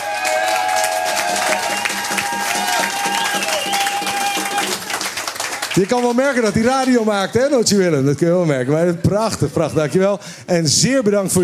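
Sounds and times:
audience applause: 0.0s - 7.3s
audience whistles: 1.4s - 4.8s
speech: 5.8s - 11.4s.

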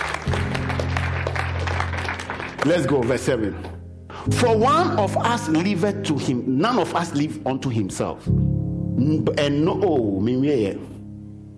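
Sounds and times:
audience clapping hands: 0.0s - 3.8s
speech: 2.6s - 10.9s.

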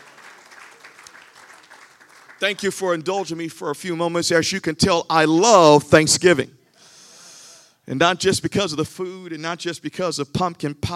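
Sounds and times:
crowd applauding: 0.0s - 3.3s
speech: 2.4s - 6.6s, 7.9s - 10.9s.

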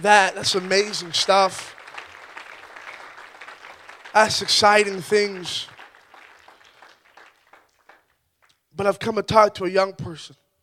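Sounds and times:
speech: 0.0s - 1.8s, 4.2s - 5.7s, 8.8s - 10.4s
round of applause: 0.0s - 8.2s.

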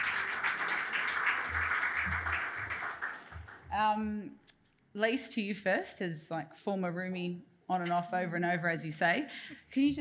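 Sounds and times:
audience applause: 0.0s - 3.7s
speech: 3.8s - 9.9s.

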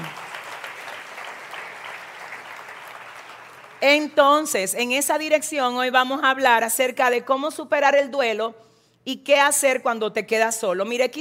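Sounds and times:
audience applause: 0.0s - 3.8s
speech: 3.8s - 11.1s.

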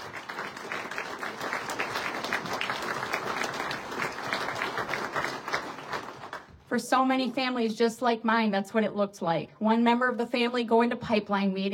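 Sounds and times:
crowd applauding: 0.0s - 6.6s
speech: 6.7s - 11.7s.

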